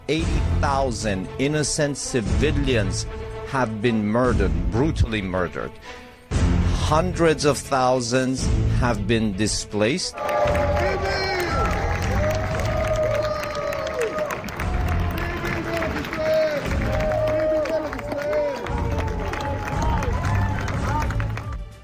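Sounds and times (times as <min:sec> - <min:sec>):
speech: 0:00.1 - 0:06.0, 0:06.8 - 0:11.2
supporters clapping: 0:10.2 - 0:21.7.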